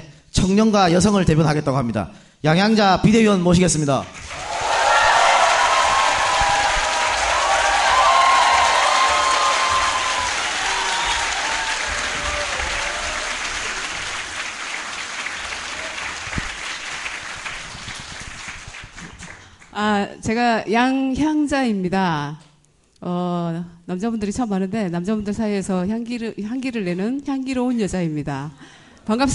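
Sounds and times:
speech: 0.4 - 4.5, 20.3 - 22.4, 23.0 - 29.3
applause: 4.1 - 19.8.

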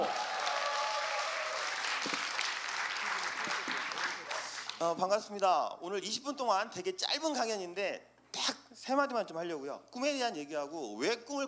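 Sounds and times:
audience applause: 0.0 - 4.8
speech: 4.8 - 8.1, 8.8 - 11.4.

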